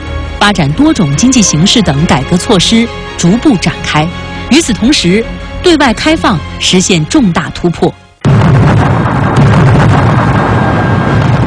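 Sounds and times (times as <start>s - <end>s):
speech: 0.4s - 8.4s
debris noise: 8.2s - 11.4s
mountain-clearing blasting explosion: 8.2s - 11.4s.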